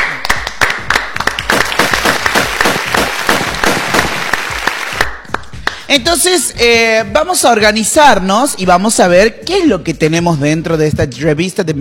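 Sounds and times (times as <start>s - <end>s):
loud applause: 0.0s - 5.1s
speech: 5.9s - 11.8s.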